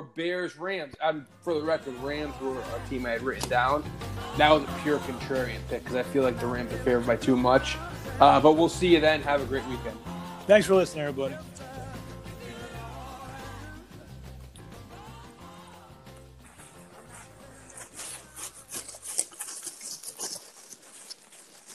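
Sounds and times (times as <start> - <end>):
speech: 0.0 - 11.7
slips of paper rustling in a hat: 17.0 - 21.7.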